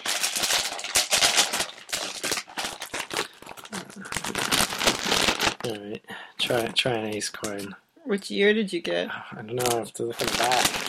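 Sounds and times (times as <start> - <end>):
person crunching on dry instant noodles: 0.0 - 5.8, 9.6 - 10.8
speech: 5.7 - 10.8.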